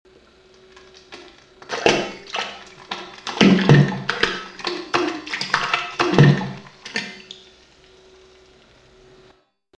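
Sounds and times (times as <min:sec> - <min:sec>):
quick plop: 0:01.2 - 0:07.2.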